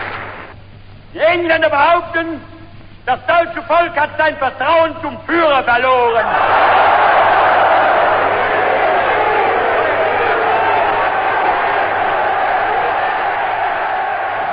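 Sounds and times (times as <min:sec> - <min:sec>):
speech: 0:01.4 - 0:07.0
rally crowd shouting in sports palace: 0:06.3 - 0:14.5.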